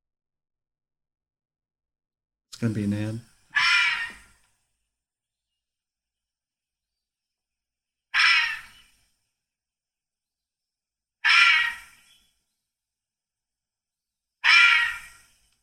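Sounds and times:
speech: 2.6s - 3.3s
fisher cat call: 3.6s - 4.2s, 8.2s - 8.7s, 11.2s - 11.9s, 14.4s - 15.1s.

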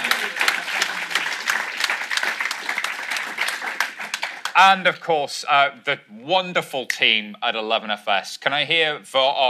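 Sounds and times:
audience applause: 0.0s - 4.9s
speech: 4.6s - 9.4s.

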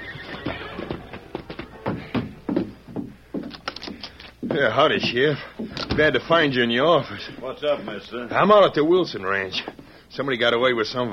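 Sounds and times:
horse hooves clopping as it is reined to a stop: 0.0s - 8.2s
speech: 4.5s - 11.1s.

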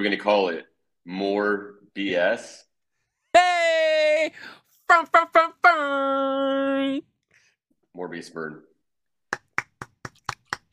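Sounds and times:
speech: 0.0s - 2.7s, 3.4s - 7.1s, 8.0s - 8.7s
hand clapping: 9.3s - 10.7s.

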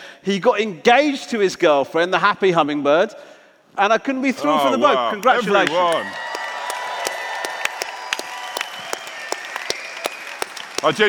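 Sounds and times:
speech: 0.2s - 6.2s, 10.8s - 11.0s
audience applauding: 4.6s - 11.0s
sharp high-pitched individual claps: 5.2s - 11.0s.

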